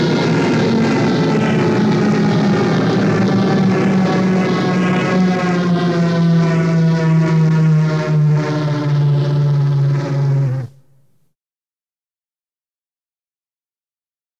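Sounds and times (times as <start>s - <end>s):
warp drive accelerating and decelerating sound effect: 0.0s - 11.0s.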